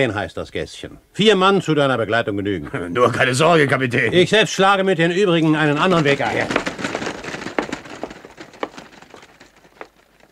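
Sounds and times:
speech: 0.0 - 6.7
footsteps crunching on gravel: 5.4 - 10.2.

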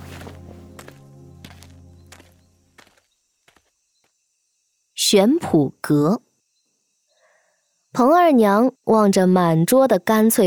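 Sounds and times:
steady tonal background: 0.0 - 2.8
footsteps of an old man walking away: 0.0 - 3.7
speech: 5.1 - 6.2, 8.0 - 10.4.

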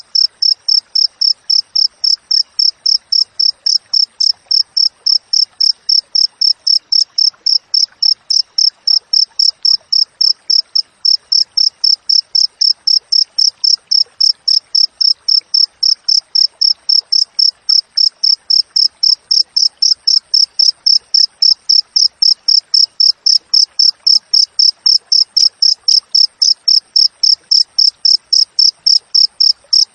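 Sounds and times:
cricket chirping: 0.0 - 29.9.

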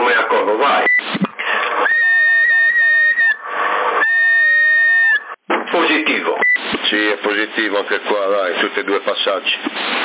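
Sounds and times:
CB radio hissy static: 0.0 - 10.0
wavering whistles through a CB radio: 1.6 - 5.4
speech: 7.8 - 10.0.

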